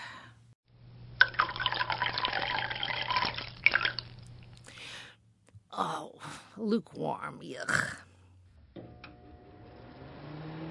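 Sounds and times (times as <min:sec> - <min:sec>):
coffee pouring into a cup: 0:01.2 - 0:04.7
speech: 0:05.8 - 0:08.0.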